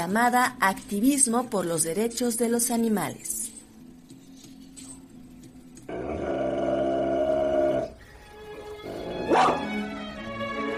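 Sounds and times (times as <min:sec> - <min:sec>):
speech: 0:00.0 - 0:03.4
dogs growling: 0:05.9 - 0:08.0, 0:08.8 - 0:09.7
dog barking: 0:09.0 - 0:09.7.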